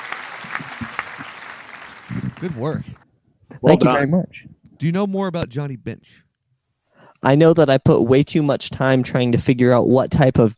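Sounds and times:
applause: 0.0s - 3.0s
speech: 2.4s - 3.0s, 3.6s - 6.2s, 7.2s - 10.5s.

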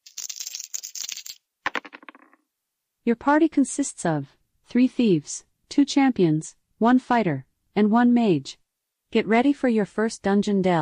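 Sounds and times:
dice being rolled: 0.0s - 2.4s
speech: 3.1s - 10.8s.

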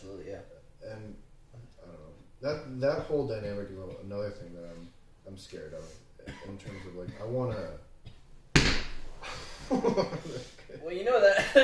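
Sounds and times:
speech: 2.4s - 7.9s, 9.7s - 11.6s
slap: 8.6s - 9.0s.

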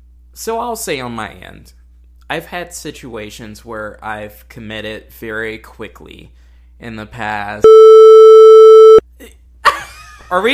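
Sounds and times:
speech: 0.4s - 8.0s, 10.3s - 10.5s
censor beep: 7.6s - 9.0s.

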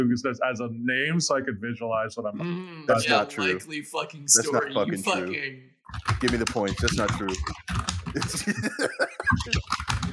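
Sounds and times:
laughter: 0.0s - 3.7s, 4.3s - 5.3s, 6.2s - 7.4s, 8.2s - 10.1s
speech: 0.0s - 10.1s
typing on a computer keyboard: 5.9s - 8.7s, 9.6s - 10.1s.

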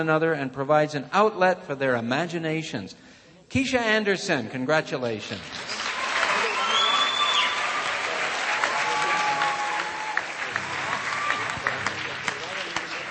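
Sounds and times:
speech: 0.0s - 5.8s
audience applause: 5.6s - 13.1s.

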